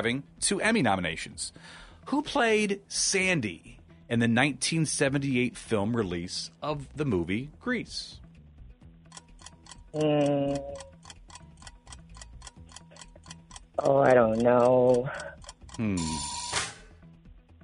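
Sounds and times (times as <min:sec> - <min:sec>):
speech: 0:00.0 - 0:08.2, 0:10.0 - 0:10.9, 0:13.8 - 0:16.4
quiz timer ticking: 0:08.8 - 0:16.5.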